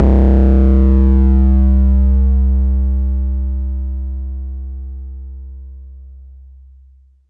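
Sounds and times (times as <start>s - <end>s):
bass drum: 0.0s - 4.6s.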